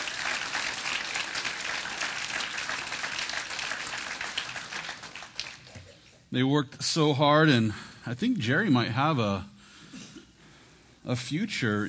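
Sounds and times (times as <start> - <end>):
audience applause: 0.0 - 5.9
speech: 6.3 - 9.5, 11.1 - 11.8.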